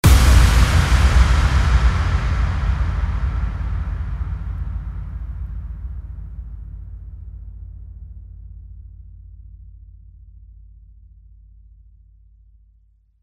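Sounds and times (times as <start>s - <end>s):
impact: 0.0s - 7.3s.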